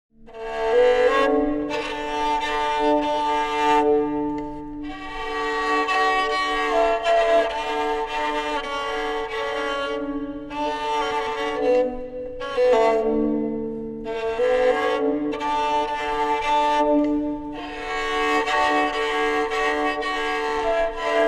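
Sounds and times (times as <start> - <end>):
bowed rabel: 0.2 - 21.2.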